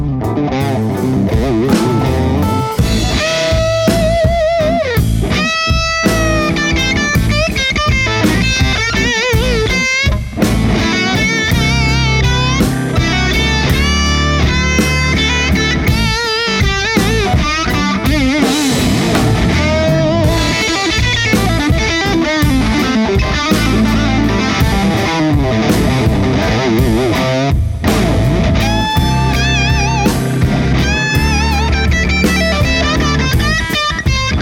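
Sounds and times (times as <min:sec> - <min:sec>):
creamy blues music: 0:00.0 - 0:34.4.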